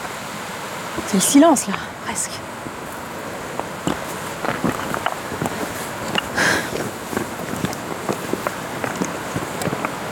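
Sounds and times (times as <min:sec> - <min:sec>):
speech: 0:01.0 - 0:02.7
footsteps on clay ground: 0:02.8 - 0:10.1.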